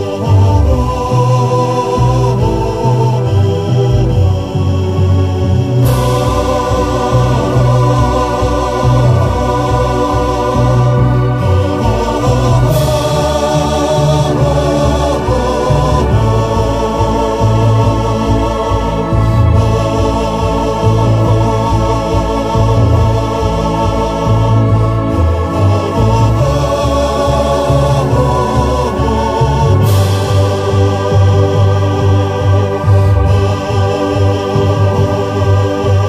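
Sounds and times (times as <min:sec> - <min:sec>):
vocal with effects: 0:00.0 - 0:36.0.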